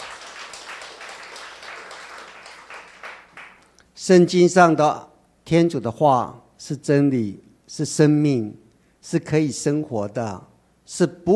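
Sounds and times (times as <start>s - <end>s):
crowd applauding: 0.0s - 3.7s
speech: 4.0s - 11.3s.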